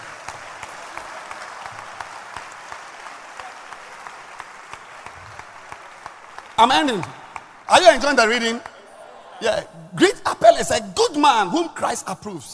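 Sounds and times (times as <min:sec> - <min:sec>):
audience clapping: 0:00.0 - 0:08.9
speech: 0:06.6 - 0:08.7, 0:09.4 - 0:12.5.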